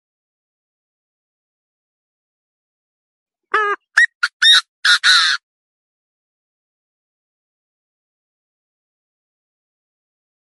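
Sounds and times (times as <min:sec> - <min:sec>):
partridge call: 0:03.5 - 0:05.4.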